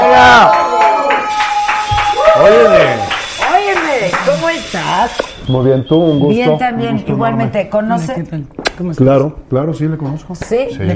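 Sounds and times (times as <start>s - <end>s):
voices cheering: 0.0s - 6.7s
audience clapping in rhythm: 0.2s - 5.1s
speech: 4.6s - 10.9s.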